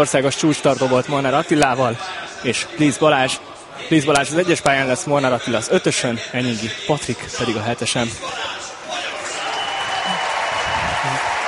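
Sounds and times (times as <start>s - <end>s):
speech: 0.0s - 8.6s
stadium crowd applauding an introduced athlete: 8.9s - 11.4s.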